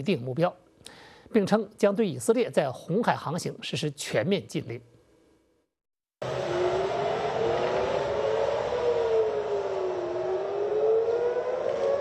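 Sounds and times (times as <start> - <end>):
speech: 0.0 - 0.6, 1.3 - 4.9
air raid warning siren in Tel Aviv: 6.2 - 11.9.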